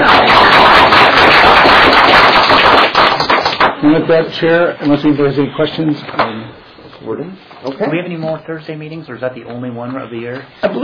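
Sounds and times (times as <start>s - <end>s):
audience applause: 0.0s - 3.8s
speech: 3.8s - 6.4s, 7.0s - 10.8s.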